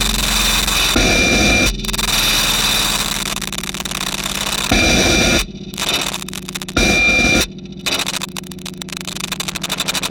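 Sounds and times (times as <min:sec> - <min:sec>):
thick low bursts: 0:00.0 - 0:07.8
buzzing electronic tones: 0:00.0 - 0:10.1
rattling feedback from film tins on speakers: 0:00.0 - 0:10.1.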